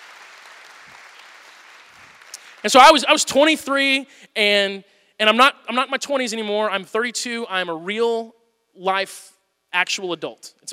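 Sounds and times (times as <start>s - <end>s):
audience applause: 0.0s - 2.7s
speech: 2.6s - 10.7s.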